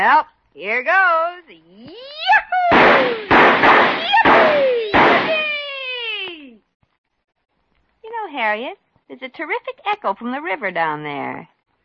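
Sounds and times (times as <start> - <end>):
speech: 0.0 - 3.3, 8.1 - 11.5
fireworks being fired: 2.7 - 5.8.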